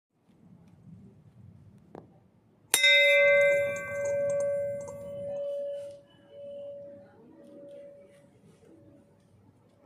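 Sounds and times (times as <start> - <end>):
bell: 2.8 - 8.4.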